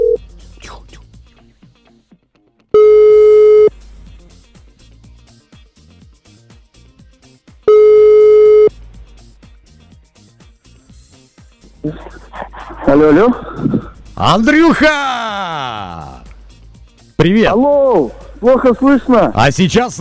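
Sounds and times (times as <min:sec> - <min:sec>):
telephone ringback tone: 0:02.8 - 0:03.7, 0:07.7 - 0:08.7
laughter: 0:11.8 - 0:14.0, 0:18.3 - 0:19.4
speech: 0:12.9 - 0:16.1, 0:17.2 - 0:19.9.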